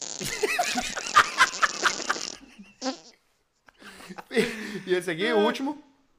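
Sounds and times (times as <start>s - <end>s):
electric fart sound effect: 0.0s - 3.2s
speech: 4.4s - 5.9s.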